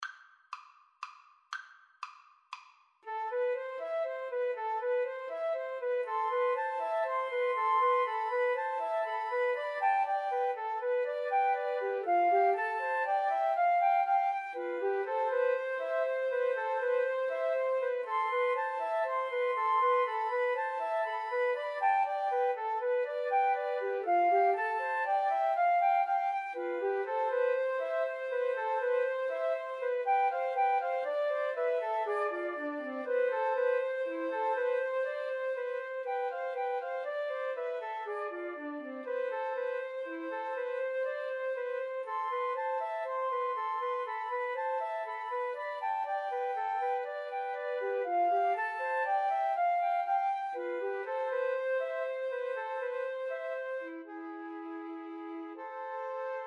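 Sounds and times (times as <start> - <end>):
flute trio playing dances: 3.1 - 56.4.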